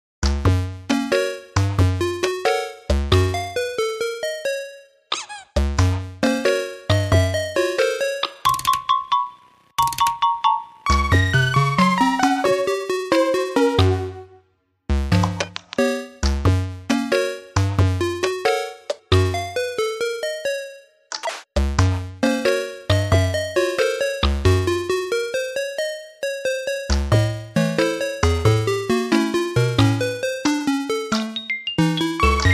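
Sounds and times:
8-bit music: 0.2s - 5.0s, 5.6s - 21.0s, 21.6s - 32.5s.

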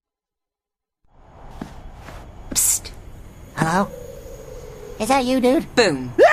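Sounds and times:
cinematic sprayer upgrade sound: 3.2s - 6.2s.

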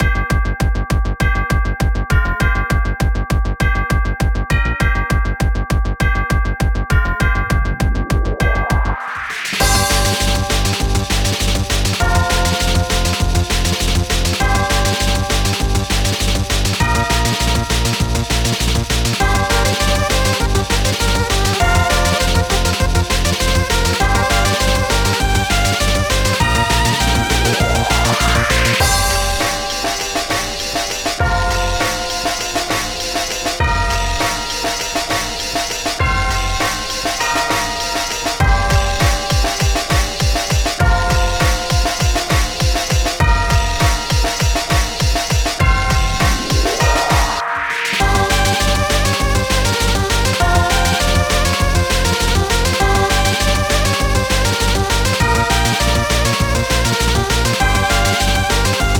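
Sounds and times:
instrumental music: 0.0s - 58.9s.

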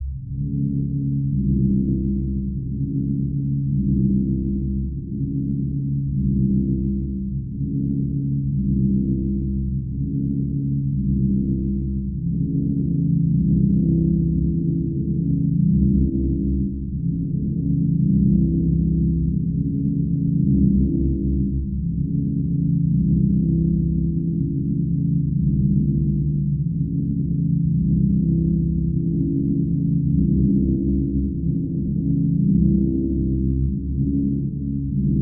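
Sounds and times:
low drone: 0.0s - 35.2s.

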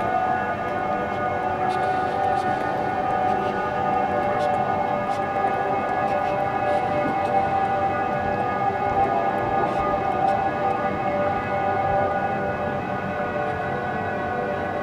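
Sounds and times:
catacombs ambience: 0.0s - 14.8s.

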